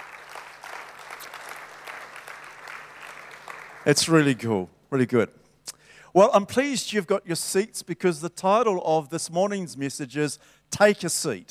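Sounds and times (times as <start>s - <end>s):
applause from a church congregation: 0.0s - 4.3s
speech: 3.8s - 5.4s, 6.1s - 11.4s.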